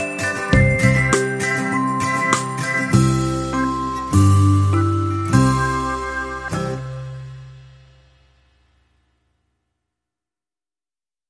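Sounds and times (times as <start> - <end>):
upbeat rasta reggae music: 0.0 - 8.1.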